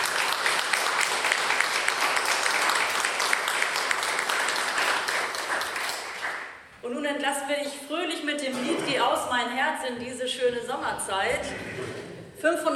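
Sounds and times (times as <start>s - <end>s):
audience applauding: 0.0s - 6.7s
speech: 7.2s - 12.7s.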